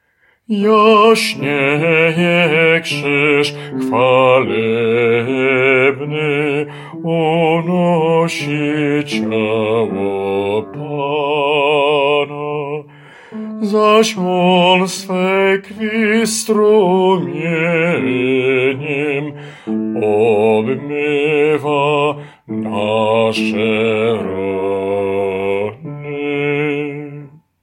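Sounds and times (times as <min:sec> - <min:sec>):
bass voice singing: 0:00.5 - 0:27.4.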